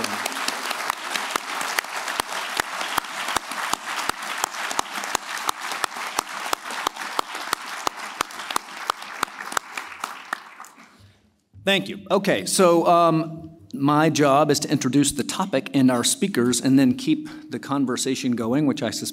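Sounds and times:
audience applause: 0.0s - 11.0s
speech: 11.7s - 19.1s.

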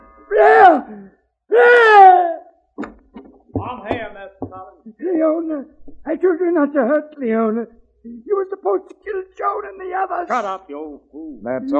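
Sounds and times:
man screaming in rage: 0.3s - 0.9s, 1.5s - 2.4s
speech: 0.3s - 2.4s, 3.8s - 11.7s.

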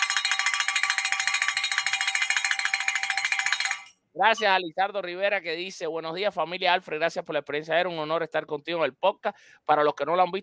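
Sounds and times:
handbell ringing: 0.0s - 4.5s
speech: 4.2s - 10.4s.

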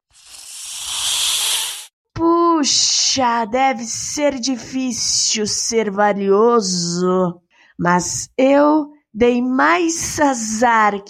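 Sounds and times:
snake hissing: 0.1s - 1.9s
speech: 2.6s - 11.0s.

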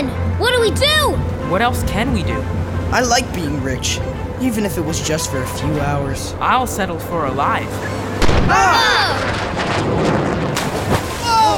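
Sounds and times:
speech: 0.0s - 10.3s
ship's cannon firing a warning shot: 8.2s - 11.3s.

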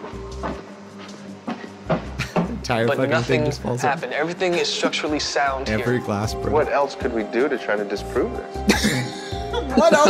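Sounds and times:
footsteps stomping on the floor upstairs: 0.0s - 2.7s
laughter: 2.2s - 2.7s, 8.7s - 10.0s
speech: 2.7s - 9.0s, 9.7s - 10.0s.

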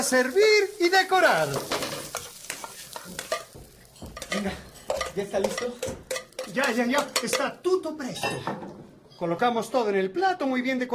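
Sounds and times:
speech: 0.0s - 1.8s, 4.4s - 10.9s
vegetables and finely cut salmon sautéing in a pan: 0.0s - 7.7s
scraping stirs in a pan: 1.4s - 7.6s.

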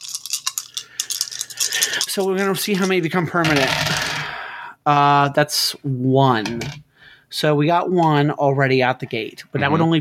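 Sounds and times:
dice being rolled: 0.0s - 4.2s
speech: 1.8s - 4.2s, 4.8s - 9.9s.

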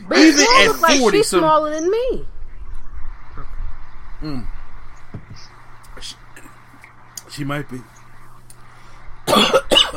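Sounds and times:
speech: 0.2s - 2.3s, 4.2s - 4.6s, 7.4s - 8.0s
person coughing after swallowing soda too fast: 9.3s - 9.9s.

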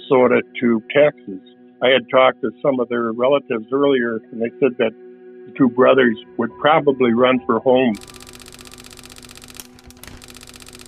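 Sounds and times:
speech: 0.1s - 8.1s
teletype printer clattering out a message: 8.0s - 10.8s.

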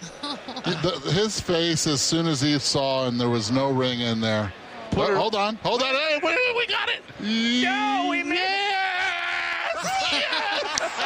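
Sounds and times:
laughter: 0.0s - 1.4s, 9.5s - 11.0s
speech: 0.8s - 8.6s
stadium crowd cheering and screaming: 8.4s - 11.0s.

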